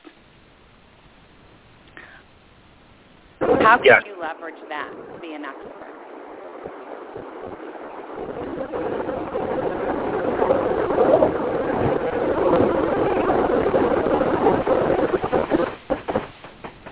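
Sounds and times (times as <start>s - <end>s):
speech: 3.7s - 6.0s
car engine and road drone while driving: 6.1s - 15.9s.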